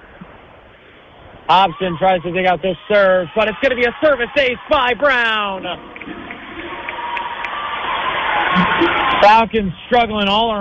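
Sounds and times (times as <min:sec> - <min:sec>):
speech: 0:01.5 - 0:06.1, 0:08.8 - 0:10.6
stadium crowd cheering: 0:01.5 - 0:09.6.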